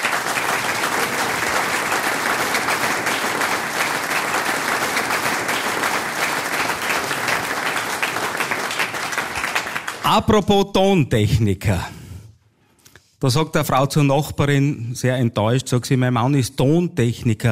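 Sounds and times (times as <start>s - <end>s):
audience applause: 0.0s - 10.2s
speech: 10.1s - 12.0s, 13.2s - 17.5s.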